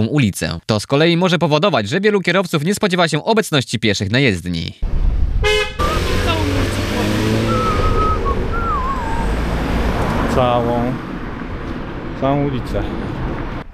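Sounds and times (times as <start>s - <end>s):
speech: 0.0s - 5.6s, 10.4s - 11.1s, 12.2s - 13.1s
car horns honking: 5.4s - 9.9s.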